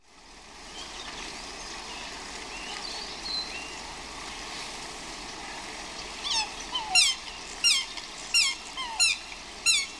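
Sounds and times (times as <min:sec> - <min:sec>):
swans squawking: 0:06.2 - 0:09.9.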